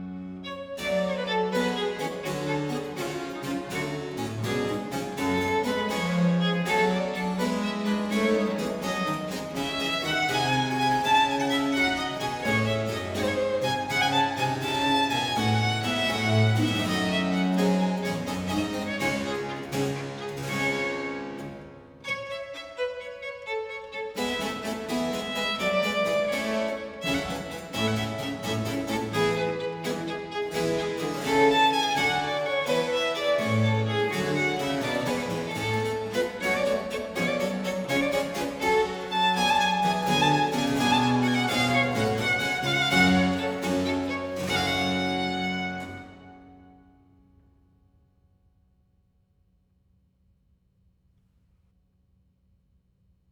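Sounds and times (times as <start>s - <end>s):
violin with basso continuo: 0.0s - 46.8s.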